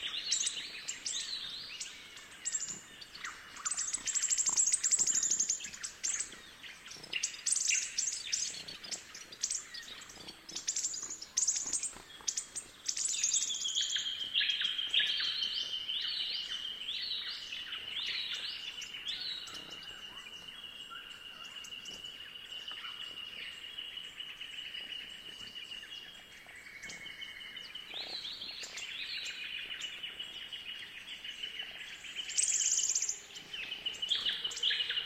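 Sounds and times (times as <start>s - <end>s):
thornbills chirping: 0.0s - 35.0s.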